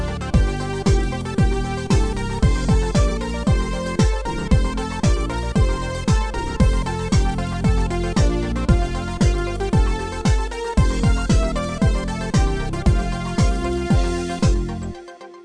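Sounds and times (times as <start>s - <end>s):
house dance music: 0.0s - 15.4s.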